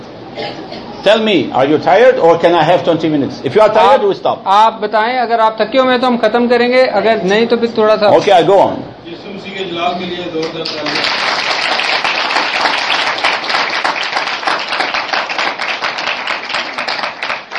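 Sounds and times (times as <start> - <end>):
speech: 0.4 - 11.6
audience clapping: 10.4 - 17.5.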